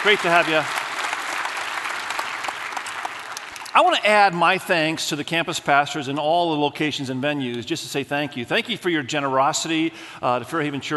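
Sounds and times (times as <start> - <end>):
speech: 0.0 - 0.8, 3.7 - 10.9
Fairhaven Church congregation applauding to welcome one another: 0.0 - 4.6.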